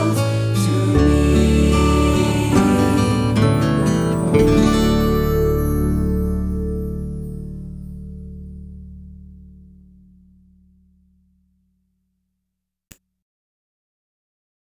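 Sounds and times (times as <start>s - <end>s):
acoustic worship music: 0.0s - 8.2s.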